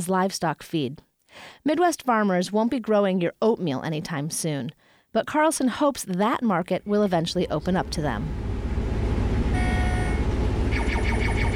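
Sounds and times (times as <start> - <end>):
speech: 0.0 - 8.5
self-driving combine harvester engine rumbling while working a field: 6.9 - 11.5.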